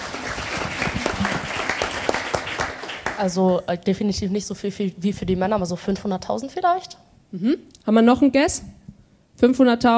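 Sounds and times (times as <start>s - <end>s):
crowd applauding: 0.0s - 3.4s
speech: 3.2s - 8.8s, 9.4s - 9.9s.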